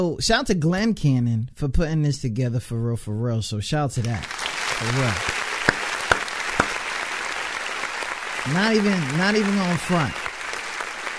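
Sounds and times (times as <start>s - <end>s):
speech: 0.0s - 5.4s, 8.4s - 10.3s
applause: 4.0s - 11.1s.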